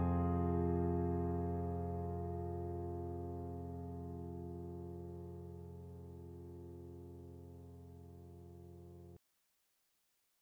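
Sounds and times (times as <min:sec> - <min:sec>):
piano accompaniment for a D string exercise: 0:00.0 - 0:08.5.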